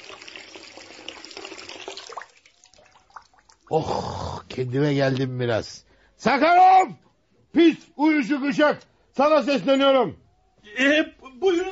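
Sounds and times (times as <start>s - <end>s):
running water from a tap splashing as someone washes their face: 0.0s - 3.7s
speech: 3.7s - 7.0s, 7.6s - 11.7s.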